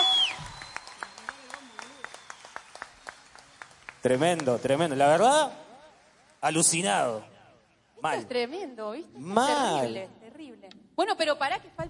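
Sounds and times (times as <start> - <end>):
audience applause: 0.0 - 7.2
speech: 4.0 - 5.6, 6.4 - 7.3, 8.0 - 11.8.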